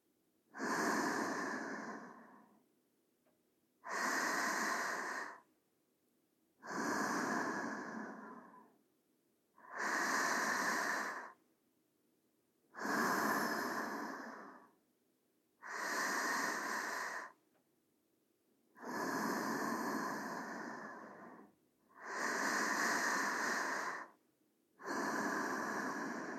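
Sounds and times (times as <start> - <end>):
sleeping breathing: 0.5 - 2.6, 3.8 - 5.5, 6.6 - 8.8, 9.6 - 11.4, 12.7 - 14.8, 15.6 - 17.4, 18.8 - 24.2, 24.8 - 26.3.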